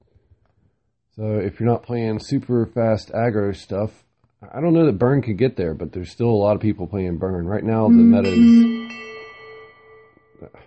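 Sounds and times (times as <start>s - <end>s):
speech: 1.2s - 9.1s
phone notification chime: 7.9s - 9.7s.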